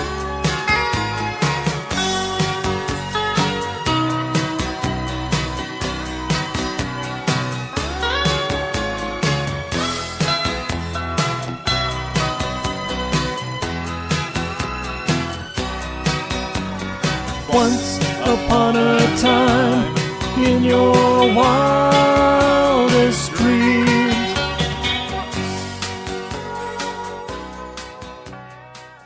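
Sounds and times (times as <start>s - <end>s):
instrumental music: 0.0s - 29.0s
background vocals: 17.4s - 24.8s.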